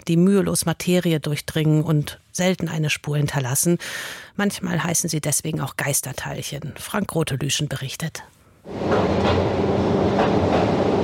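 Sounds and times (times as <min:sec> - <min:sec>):
speech: 0:00.0 - 0:10.0
small rail car rumbling down an inclined mine tunnel: 0:08.7 - 0:11.0.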